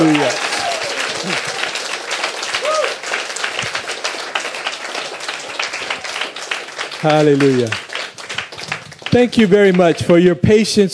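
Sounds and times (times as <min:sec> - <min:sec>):
shouts and whoops: 0:00.0 - 0:01.8, 0:02.5 - 0:03.0
crowd applause: 0:00.0 - 0:10.6
speech: 0:07.0 - 0:07.8, 0:09.1 - 0:10.9.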